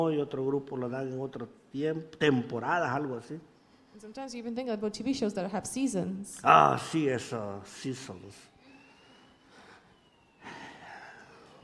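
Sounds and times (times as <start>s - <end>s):
speech: 0.0s - 8.5s
ambulance siren wailing: 6.6s - 11.6s.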